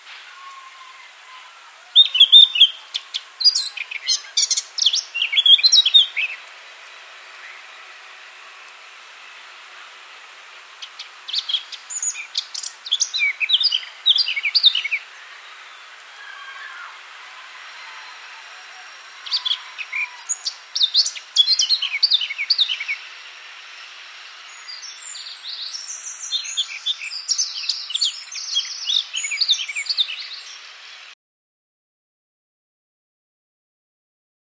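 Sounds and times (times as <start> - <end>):
Eurasian blackcap singing: 1.9 - 7.8, 10.8 - 15.9, 19.2 - 23.0, 24.5 - 30.6.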